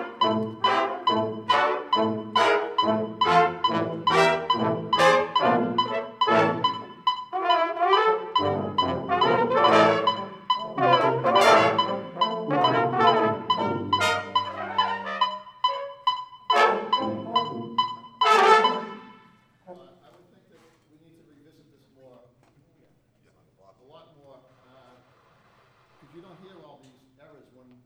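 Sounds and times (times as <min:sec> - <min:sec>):
bopping brass practice: 0:00.0 - 0:20.6.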